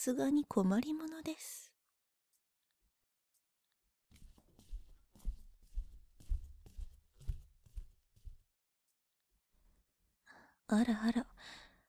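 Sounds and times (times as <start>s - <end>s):
speech: 0.0s - 1.7s, 10.7s - 11.6s
soft footsteps in a hallway: 4.1s - 8.6s.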